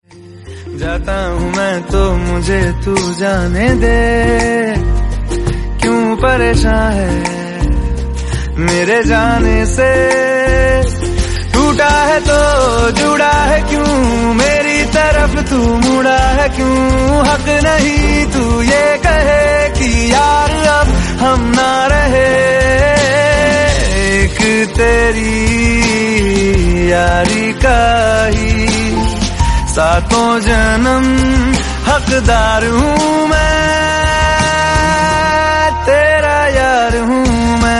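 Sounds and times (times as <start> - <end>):
Bollywood song: 0.0 - 37.7.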